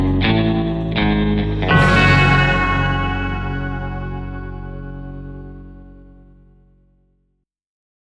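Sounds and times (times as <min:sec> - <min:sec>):
western film score: 0:00.0 - 0:05.8.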